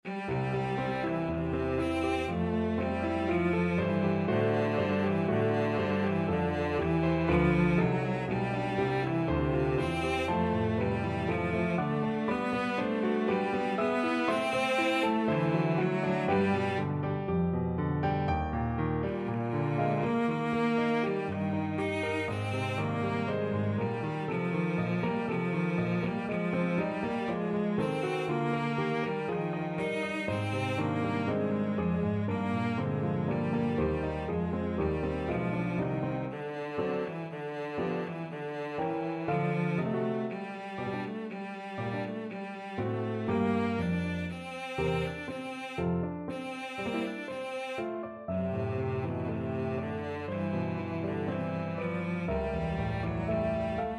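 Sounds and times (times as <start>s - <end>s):
violoncello: 0.0s - 53.9s.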